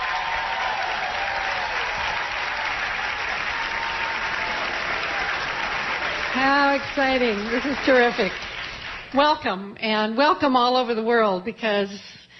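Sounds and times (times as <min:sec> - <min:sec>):
audience applauding a singer walking on stage at the Freight and Salvage: 0:00.0 - 0:09.2
speech: 0:06.3 - 0:08.4, 0:09.1 - 0:12.2.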